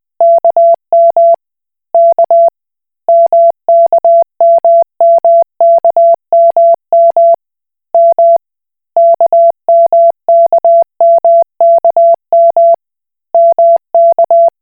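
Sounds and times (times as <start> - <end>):
Koch Morse code beeps: 0.2 - 1.4, 2.0 - 2.5, 3.1 - 7.4, 9.0 - 12.8, 13.4 - 14.6.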